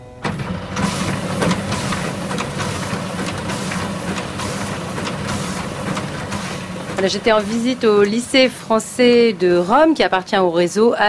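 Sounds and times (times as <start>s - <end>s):
scanner digitising baccalaureate exam papers whirring: 0.0s - 10.3s
scanner sheet feed clicks and ticks: 0.2s - 8.7s
speech: 7.0s - 11.0s.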